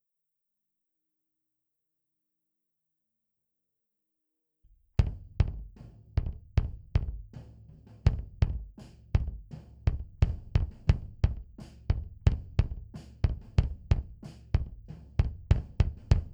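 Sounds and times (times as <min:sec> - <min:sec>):
bass drum: 0:04.8 - 0:16.3.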